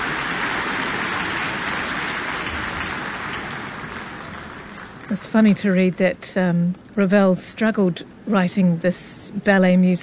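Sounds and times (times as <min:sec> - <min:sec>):
large audience applause after orchestral concert: 0:00.0 - 0:05.3
speech: 0:05.1 - 0:10.0.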